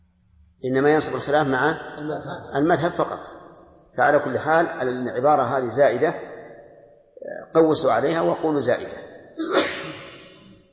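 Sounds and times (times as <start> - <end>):
speech: 0.6 - 3.4, 4.0 - 6.3, 7.2 - 9.7
person sneezing: 9.4 - 10.5.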